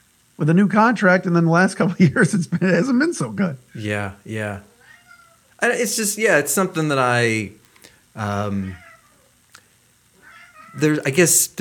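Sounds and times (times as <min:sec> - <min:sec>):
speech: 0:00.4 - 0:04.7, 0:05.6 - 0:07.6, 0:08.2 - 0:08.8, 0:10.8 - 0:11.5
pet cat meowing: 0:04.5 - 0:05.5, 0:08.4 - 0:09.3, 0:10.2 - 0:11.1.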